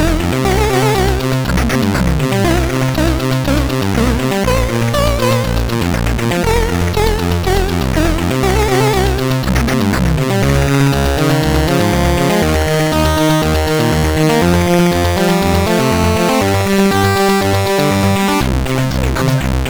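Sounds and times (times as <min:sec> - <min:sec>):
chiptune melody on SID CSG8580R5 chip: 0:00.0 - 0:18.7.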